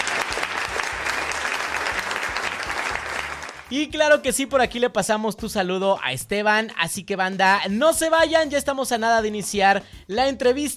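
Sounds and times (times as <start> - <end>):
applause: 0.0 - 3.7
speech: 3.7 - 10.7.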